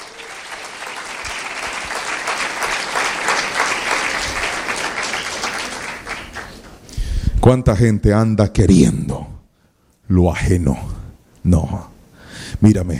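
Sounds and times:
audience applause: 0:00.0 - 0:06.8
speech: 0:07.4 - 0:09.3, 0:10.1 - 0:11.9, 0:12.6 - 0:12.9.

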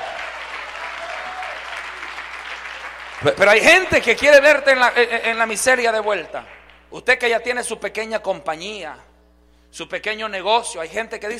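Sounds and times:
audience applause: 0:00.0 - 0:04.3
speech: 0:03.2 - 0:09.1, 0:09.7 - 0:11.3.

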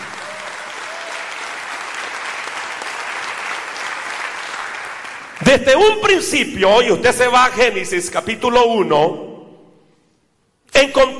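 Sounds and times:
audience applause: 0:00.0 - 0:05.5
speech: 0:05.5 - 0:09.2, 0:10.8 - 0:11.1.

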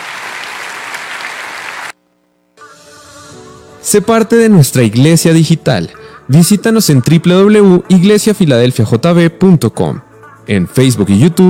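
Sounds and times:
applause: 0:00.0 - 0:02.0
speech: 0:03.8 - 0:11.4.

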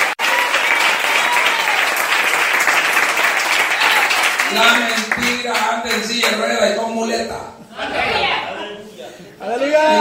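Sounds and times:
audience applauding: 0:00.0 - 0:06.4
speech: 0:04.6 - 0:08.5, 0:09.5 - 0:09.9.

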